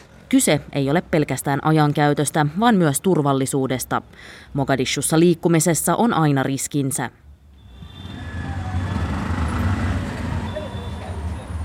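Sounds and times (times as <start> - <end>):
speech: 0.3 - 7.2
motorcycle driving along busy city streets of Mogadishu: 7.6 - 11.6.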